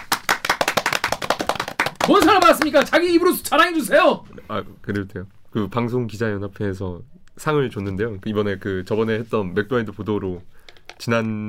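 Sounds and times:
several pairs of hands clapping: 0.0 - 3.2
speech: 2.1 - 11.4.

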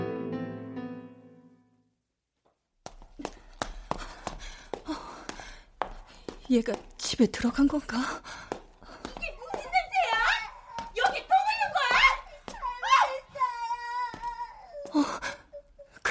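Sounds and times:
speech: 6.5 - 8.5
child crying: 9.2 - 16.0.

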